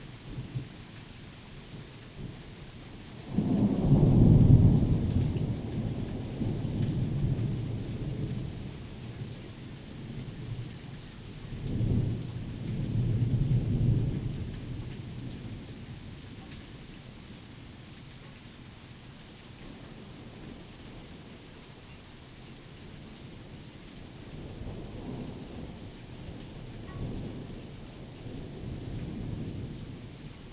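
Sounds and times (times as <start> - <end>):
thunderstorm: 3.1 - 16.4, 23.2 - 30.5.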